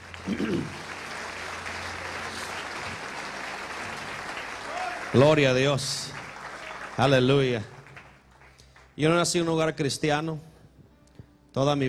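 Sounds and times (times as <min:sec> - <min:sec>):
crowd clapping: 0:00.0 - 0:09.4
speech: 0:00.3 - 0:00.8, 0:05.1 - 0:06.2, 0:07.0 - 0:07.8, 0:09.0 - 0:10.5, 0:11.6 - 0:11.8.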